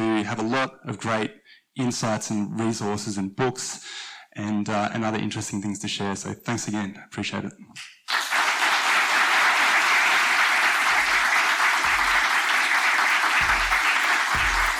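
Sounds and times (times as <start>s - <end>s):
speech: 0.3s - 8.2s
audience applause: 8.1s - 14.7s.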